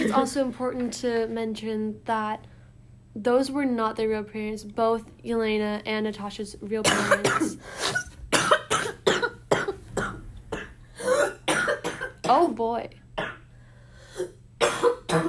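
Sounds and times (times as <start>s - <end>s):
person coughing with bronchitis: 0.0s - 0.3s, 6.8s - 12.4s, 14.2s - 15.2s
speech: 0.1s - 2.5s, 3.2s - 8.1s, 12.3s - 13.0s.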